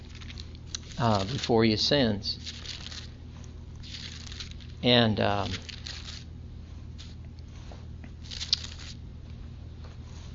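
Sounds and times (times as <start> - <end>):
book pages being turned: 0.0 - 1.6, 2.4 - 3.2, 3.8 - 6.3, 8.2 - 9.0
low steady hum: 0.0 - 10.3
speech: 1.0 - 2.8, 4.8 - 5.7.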